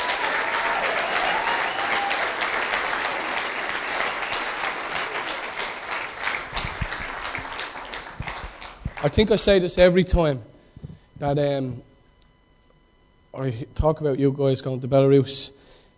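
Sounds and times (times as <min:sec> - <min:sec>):
crowd applauding: 0:00.0 - 0:09.5
speech: 0:09.0 - 0:10.5, 0:11.2 - 0:11.9, 0:13.4 - 0:15.6.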